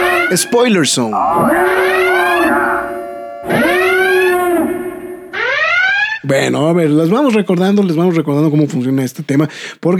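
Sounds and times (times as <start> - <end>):
bells: 0.0 - 5.4
speech: 0.3 - 3.8, 6.2 - 9.9.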